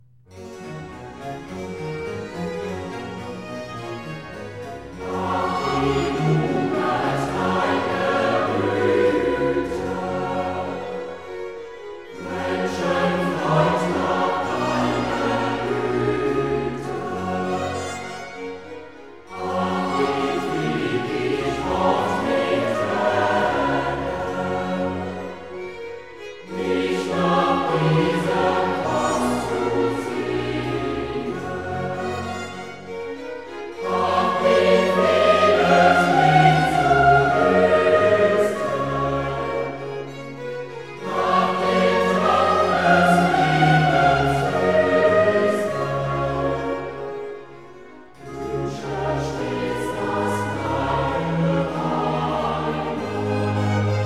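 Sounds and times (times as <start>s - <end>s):
choir singing: 0.0s - 54.0s.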